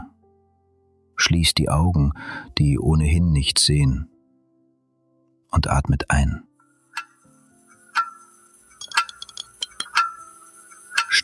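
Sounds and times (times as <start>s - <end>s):
speech: 1.2s - 4.1s, 5.5s - 6.5s
clock ticking: 8.0s - 8.2s, 8.8s - 10.3s, 10.9s - 11.2s.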